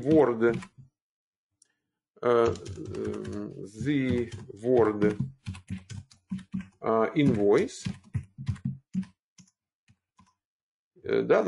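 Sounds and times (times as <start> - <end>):
computer keyboard typing a word: 0.0 - 0.8, 2.3 - 10.4
speech: 0.0 - 0.8, 2.2 - 8.0, 11.1 - 11.4.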